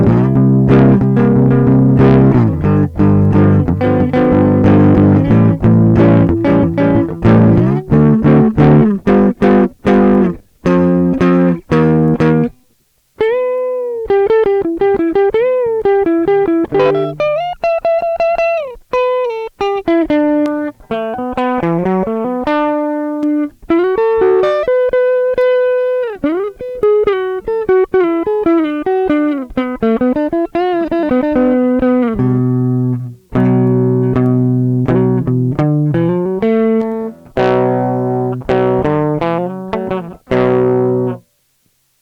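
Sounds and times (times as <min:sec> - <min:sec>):
fuzz distortion: 0:00.0 - 0:12.6, 0:13.2 - 0:41.3.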